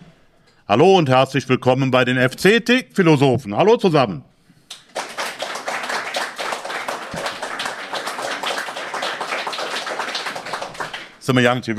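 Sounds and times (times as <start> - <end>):
speech: 0.7 - 4.3, 11.3 - 11.7
applause: 4.7 - 11.3.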